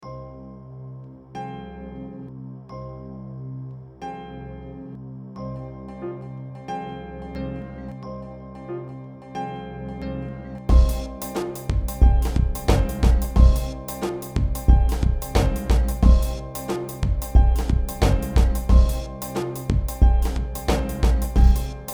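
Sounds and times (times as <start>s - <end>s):
groove music: 10.7s - 21.9s.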